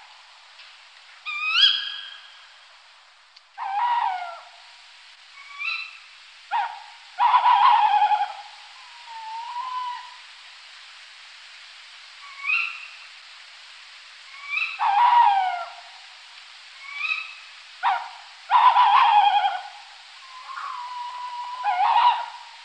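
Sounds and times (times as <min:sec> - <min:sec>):
tawny owl hooting: 0:01.3 - 0:02.4, 0:03.6 - 0:04.6, 0:05.4 - 0:10.3, 0:12.2 - 0:13.0, 0:14.3 - 0:15.9, 0:16.8 - 0:22.6.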